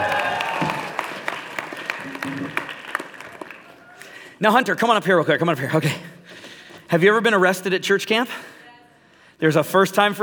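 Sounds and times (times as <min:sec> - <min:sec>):
audience applause: 0:00.0 - 0:04.2
speech: 0:04.4 - 0:06.1, 0:06.9 - 0:08.5, 0:09.4 - 0:10.2.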